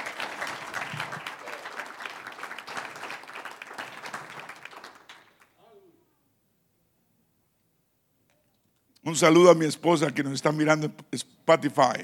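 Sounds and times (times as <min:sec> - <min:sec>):
audience applause: 0:00.0 - 0:05.5
speech: 0:09.0 - 0:12.0.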